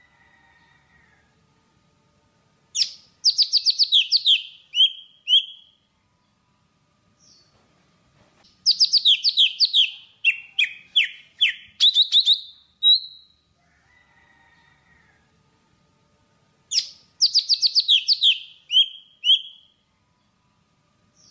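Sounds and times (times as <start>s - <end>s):
Java sparrow song: 2.7s - 6.4s, 8.5s - 13.4s, 16.7s - 20.4s.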